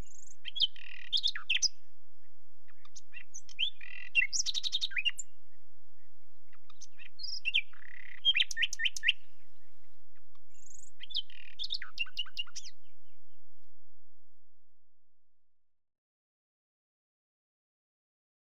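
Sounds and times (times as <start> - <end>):
common nightingale song: 0.0 - 13.8.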